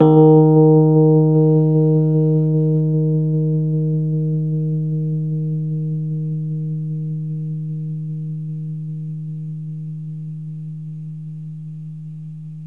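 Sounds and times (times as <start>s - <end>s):
Rhodes 73 electric piano slow in D#: 0.0s - 8.5s.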